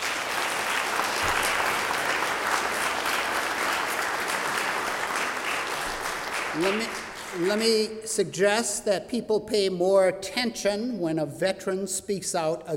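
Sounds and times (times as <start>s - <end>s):
audience applause: 0.0s - 7.7s
speech: 6.6s - 12.7s.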